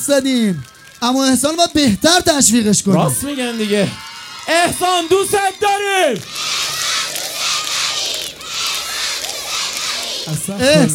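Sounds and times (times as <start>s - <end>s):
speech: 0.0s - 6.6s, 10.3s - 10.9s
crowd cheering: 0.0s - 10.9s
applause: 3.1s - 10.9s.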